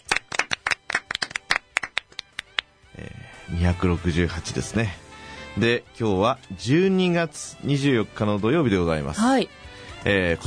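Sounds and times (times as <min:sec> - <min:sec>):
applause from a few people: 0:00.0 - 0:02.8
speech: 0:03.0 - 0:10.4.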